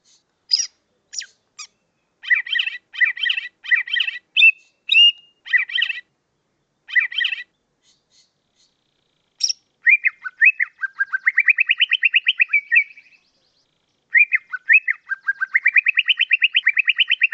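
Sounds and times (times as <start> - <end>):
leafbird song: 0.0 - 17.3.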